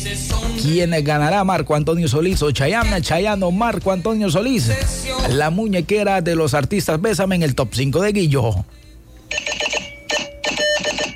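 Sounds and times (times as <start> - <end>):
speech: 0.1 - 9.4
Morse code beeping: 9.3 - 11.1.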